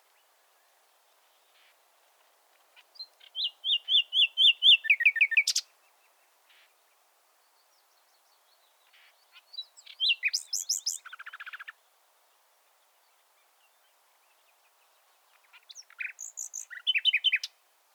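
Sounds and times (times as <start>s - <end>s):
Common nightingale singing: 2.8s - 6.8s, 7.4s - 11.8s, 13.0s - 17.6s.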